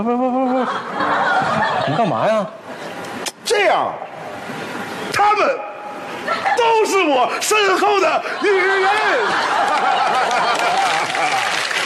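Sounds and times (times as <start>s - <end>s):
speech: 0.0s - 0.8s, 1.9s - 2.6s, 3.5s - 4.6s, 6.3s - 11.5s
laughter: 0.0s - 2.6s, 6.2s - 11.8s
audience applause: 8.9s - 11.8s.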